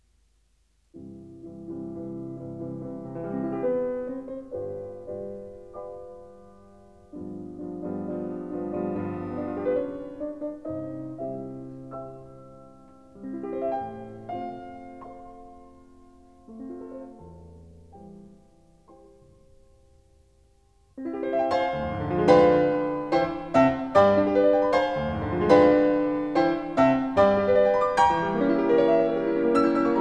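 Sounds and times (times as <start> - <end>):
classical music: 0.0 - 29.9.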